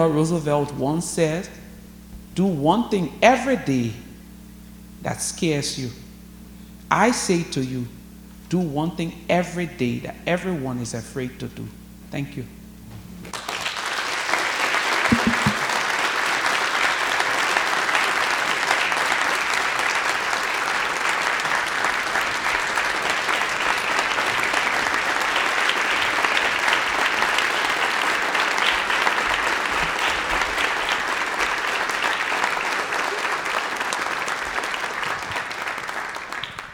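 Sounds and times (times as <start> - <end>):
speech: 0.0 - 1.6, 2.4 - 4.0, 5.0 - 6.0, 6.9 - 12.6
audience applause after a speech: 13.3 - 36.7.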